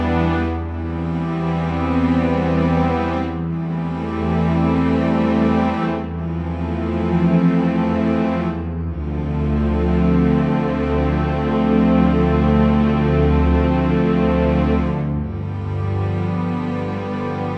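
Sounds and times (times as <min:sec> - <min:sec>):
string progression: 0:00.0 - 0:17.5.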